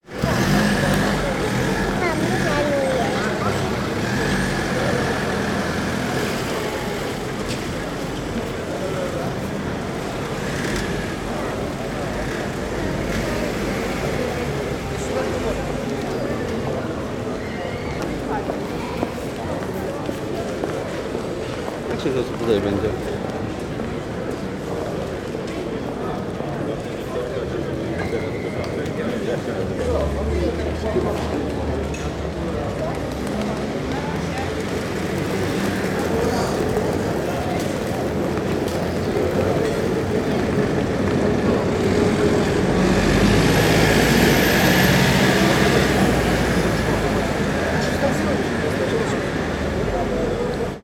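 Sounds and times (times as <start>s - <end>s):
city center ambience: 0.0s - 50.8s.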